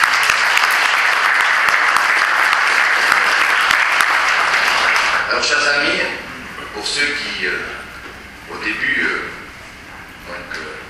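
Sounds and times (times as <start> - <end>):
crowd applauding: 0.0 - 5.6
speech: 5.4 - 6.2, 6.8 - 7.8, 8.5 - 9.3.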